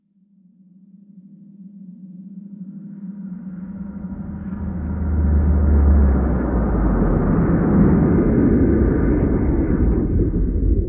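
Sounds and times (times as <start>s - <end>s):
huge spaceship passing: 3.4s - 10.8s.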